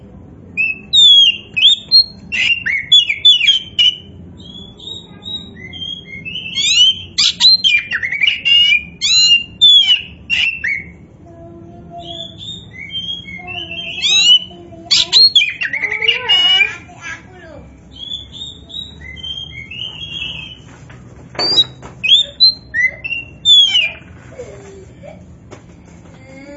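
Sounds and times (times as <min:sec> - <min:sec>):
Oriental magpie-robin song: 0:00.6 - 0:11.0, 0:12.0 - 0:16.9, 0:17.9 - 0:20.7, 0:21.4 - 0:24.2.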